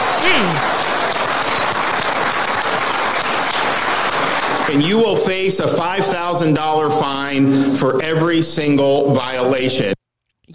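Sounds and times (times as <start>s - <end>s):
audience applause: 0.0s - 6.3s
voiced shout or cheer: 0.2s - 0.6s
speech: 4.7s - 10.5s.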